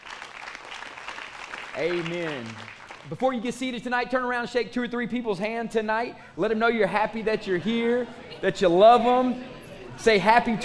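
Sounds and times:
audience hand clapping: 0.0s - 3.7s
speech: 1.8s - 10.6s.

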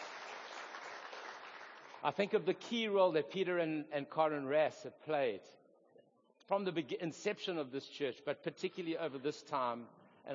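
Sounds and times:
round of applause: 0.0s - 2.4s
speech: 2.0s - 5.6s, 6.5s - 10.3s.

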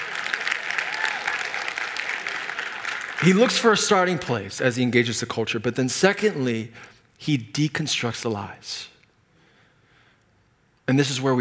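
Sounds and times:
weak audience clapping: 0.0s - 3.8s
speech: 3.2s - 8.9s, 10.9s - 11.3s.

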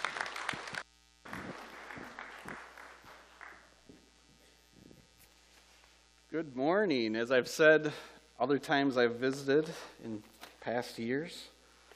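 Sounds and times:
audience applause: 0.0s - 3.8s
speech: 6.4s - 11.5s.

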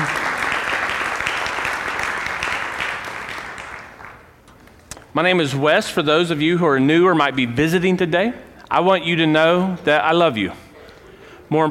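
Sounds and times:
crowd clapping: 0.0s - 4.4s
speech: 5.2s - 10.6s, 11.5s - 11.6s.

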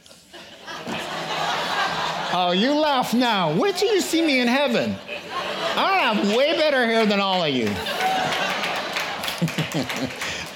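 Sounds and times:
laughter: 0.2s - 10.5s
speech: 2.3s - 5.1s, 5.8s - 8.0s, 9.8s - 10.3s
few people clapping: 6.1s - 10.5s.

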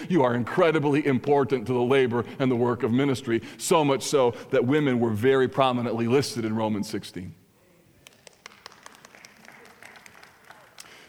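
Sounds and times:
speech: 0.1s - 7.4s
few people clapping: 7.9s - 11.0s.

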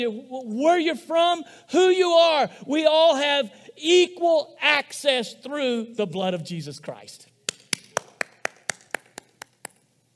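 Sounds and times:
speech: 0.0s - 7.3s
hand clap: 7.4s - 10.0s.

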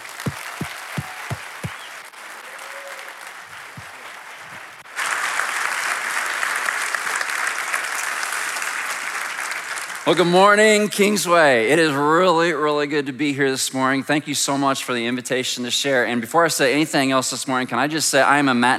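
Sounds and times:
church congregation at Kingsway applauding a guest speaker: 0.0s - 11.0s
speech: 10.1s - 18.7s.

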